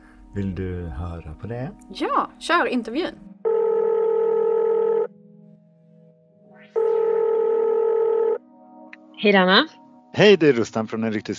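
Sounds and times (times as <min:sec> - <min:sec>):
speech: 0:00.4 - 0:03.3, 0:09.2 - 0:11.3
phone ringback tones on an outgoing call: 0:03.4 - 0:05.2, 0:06.8 - 0:08.4.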